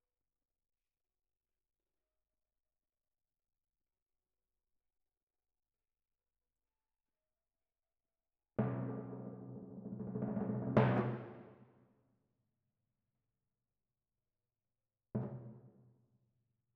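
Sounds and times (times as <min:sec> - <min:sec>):
timpani in F: 0:08.6 - 0:11.6.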